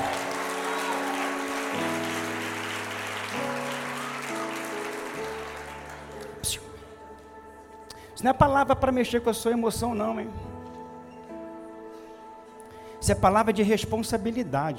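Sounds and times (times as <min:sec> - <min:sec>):
audience applauding: 0:00.0 - 0:06.9
speech: 0:06.4 - 0:06.7, 0:08.2 - 0:10.5, 0:13.0 - 0:14.7.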